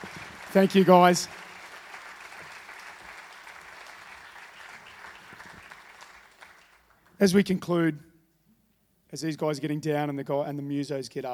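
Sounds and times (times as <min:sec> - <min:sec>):
speech: 0:00.0 - 0:01.4, 0:07.2 - 0:08.1, 0:09.1 - 0:11.3
audience applause: 0:00.0 - 0:07.2.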